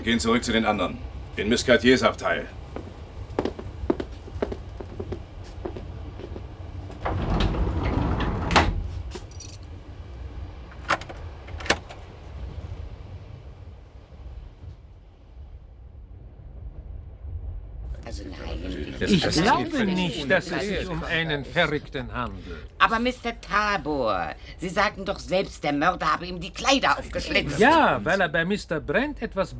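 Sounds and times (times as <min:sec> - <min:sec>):
speech: 0:00.0 - 0:02.6, 0:19.1 - 0:29.5
low rumble of the moving train: 0:00.0 - 0:29.5
keys rattling while locking a train compartment door: 0:09.1 - 0:09.8
laughter: 0:18.0 - 0:25.1, 0:26.7 - 0:28.4.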